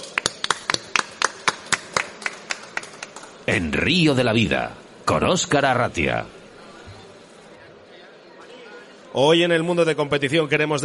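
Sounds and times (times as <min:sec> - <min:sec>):
small audience applause: 0:00.0 - 0:03.4
speech: 0:03.5 - 0:06.4, 0:09.2 - 0:10.8.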